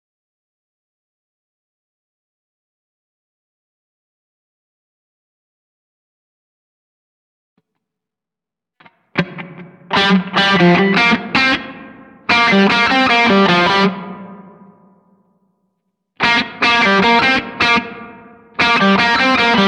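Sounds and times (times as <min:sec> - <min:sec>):
guitar: 0:08.8 - 0:15.2, 0:16.2 - 0:19.6.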